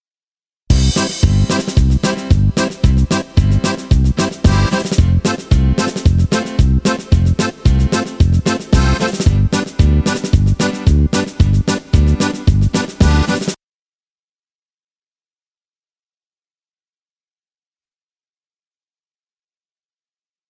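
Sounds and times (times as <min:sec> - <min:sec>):
adventure karaoke backing track: 0:00.7 - 0:13.6.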